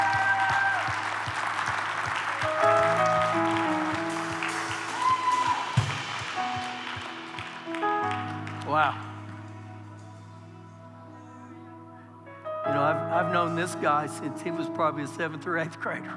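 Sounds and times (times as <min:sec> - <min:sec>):
crowd clapping: 0:00.0 - 0:09.4
speech: 0:13.6 - 0:16.1.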